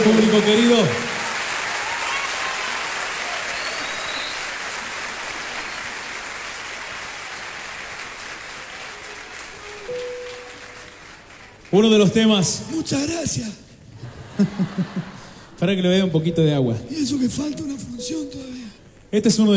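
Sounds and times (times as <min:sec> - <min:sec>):
audience applause: 0:00.0 - 0:12.5
speech: 0:00.2 - 0:01.1, 0:11.7 - 0:13.6, 0:14.4 - 0:18.5, 0:19.1 - 0:19.5
laughter: 0:13.9 - 0:15.5.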